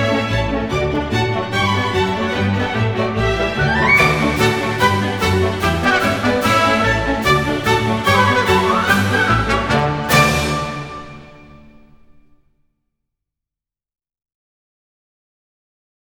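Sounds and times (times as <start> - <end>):
orchestral scherzo: 0.0 - 12.4.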